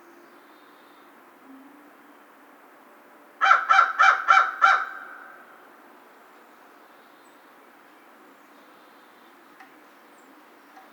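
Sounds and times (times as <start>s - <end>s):
American crow cawing: 3.4s - 5.4s.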